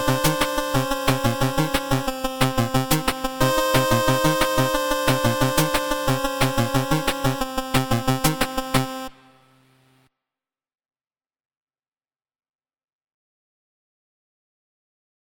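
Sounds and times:
eight-bit chiptune music: 0:00.0 - 0:09.5.

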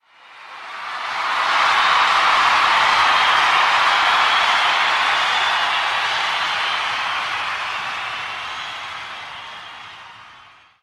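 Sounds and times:
crowd cheering: 0:00.0 - 0:10.8.

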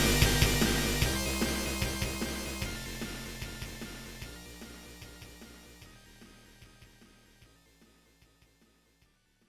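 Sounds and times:
punk metal band playing: 0:00.0 - 0:04.2.

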